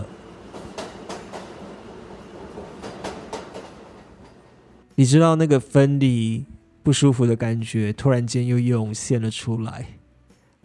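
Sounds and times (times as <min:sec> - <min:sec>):
electric train rolling along rails: 0:00.0 - 0:04.8
speech: 0:05.0 - 0:10.0.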